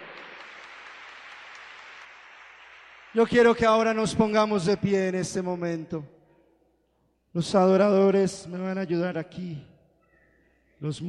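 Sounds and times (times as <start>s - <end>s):
audience applause: 0.0s - 3.9s
speech: 3.1s - 6.2s, 7.4s - 9.7s, 10.8s - 11.0s.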